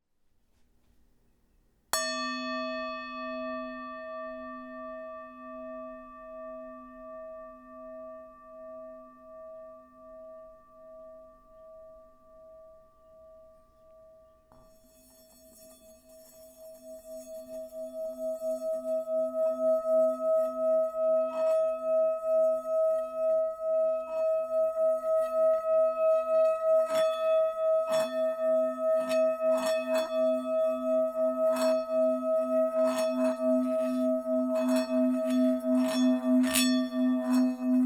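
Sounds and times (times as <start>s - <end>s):
Tibetan singing bowl: 1.9s - 37.8s.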